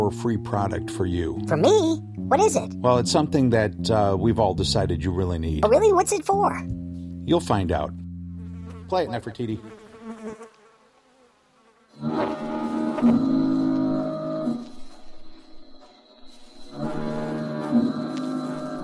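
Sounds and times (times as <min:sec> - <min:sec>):
speech: 0:00.1 - 0:08.0, 0:08.9 - 0:10.4
foghorn: 0:12.0 - 0:14.9, 0:16.7 - 0:18.8.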